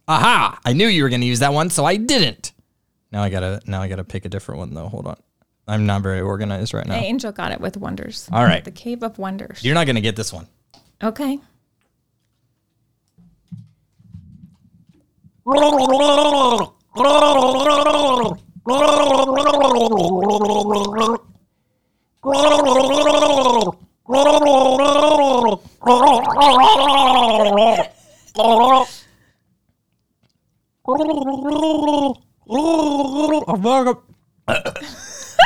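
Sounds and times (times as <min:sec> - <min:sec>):
speech: 0:00.1 - 0:11.5, 0:15.5 - 0:21.3, 0:22.2 - 0:29.0, 0:30.9 - 0:35.4
person gargling water while voicing a tune: 0:15.5 - 0:21.3, 0:22.2 - 0:29.0, 0:30.8 - 0:35.0.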